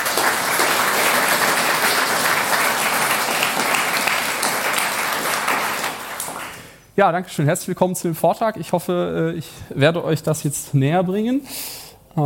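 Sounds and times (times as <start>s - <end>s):
audience applause: 0.0s - 6.8s
speech: 7.0s - 12.2s.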